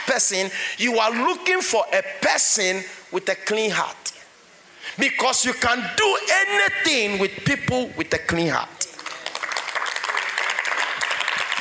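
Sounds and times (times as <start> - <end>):
speech: 0.1 - 4.1, 5.0 - 8.8
audience clapping: 8.8 - 11.6.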